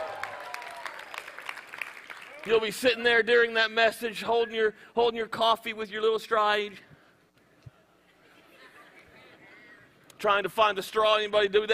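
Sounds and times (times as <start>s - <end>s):
crowd applauding: 0.0s - 2.8s
speech: 2.4s - 6.9s, 10.2s - 11.7s.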